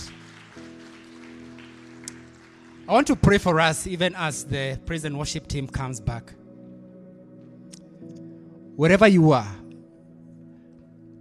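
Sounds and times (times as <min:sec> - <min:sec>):
audience clapping: 0:00.0 - 0:03.9
speech: 0:02.9 - 0:06.4, 0:08.8 - 0:09.6.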